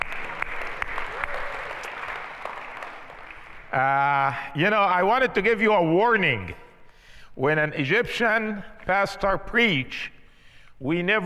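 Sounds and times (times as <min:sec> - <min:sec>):
church congregation applauding during a Missions Month service: 0:00.0 - 0:04.4
speech: 0:03.7 - 0:06.6, 0:07.4 - 0:10.2, 0:10.8 - 0:11.2.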